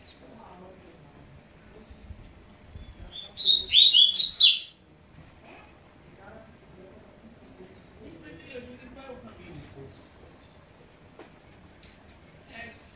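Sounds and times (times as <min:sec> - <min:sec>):
double-collared seedeater singing fast bright chattering notes: 0:03.2 - 0:04.7.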